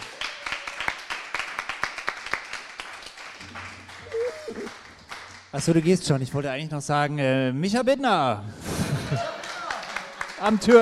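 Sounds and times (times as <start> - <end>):
audience clapping: 0.0 - 6.3, 9.1 - 10.8
speech: 5.5 - 9.3, 10.4 - 10.8
laughter: 8.6 - 10.0.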